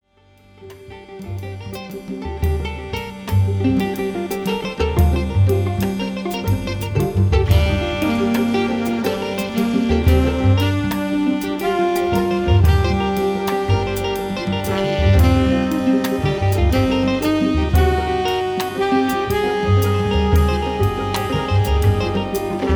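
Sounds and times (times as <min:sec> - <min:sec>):
blues music: 0:00.0 - 0:22.7.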